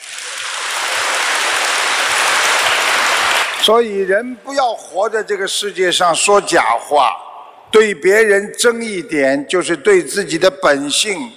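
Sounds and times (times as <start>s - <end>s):
audience applause: 0.0s - 3.7s
speech: 3.7s - 11.3s.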